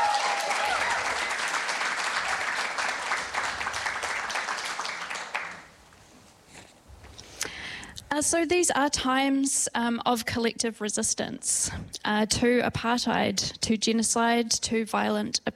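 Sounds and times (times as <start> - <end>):
audience applause: 0.0 - 5.7
speech: 8.2 - 15.5.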